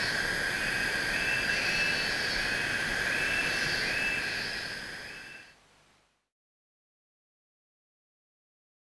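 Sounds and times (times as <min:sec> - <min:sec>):
jungle ambience: 0:00.0 - 0:05.7.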